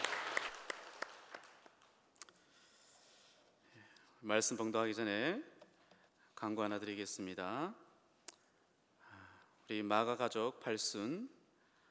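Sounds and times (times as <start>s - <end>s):
audience applause: 0.0s - 1.7s
speech: 4.2s - 5.5s, 6.4s - 7.8s, 9.7s - 11.4s.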